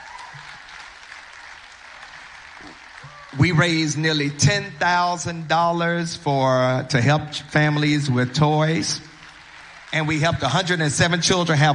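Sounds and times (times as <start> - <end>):
audience applause: 0.0 - 4.0, 8.5 - 11.7
speech: 2.7 - 9.1, 9.9 - 11.7.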